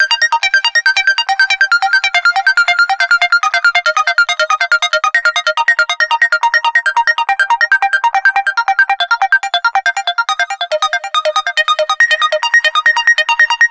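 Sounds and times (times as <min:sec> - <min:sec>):
NRG trance synth arpeggio: 0:00.0 - 0:13.6.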